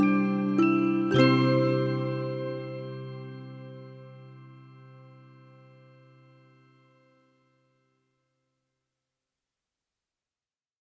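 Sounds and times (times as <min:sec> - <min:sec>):
lullaby music: 0:00.0 - 0:07.6.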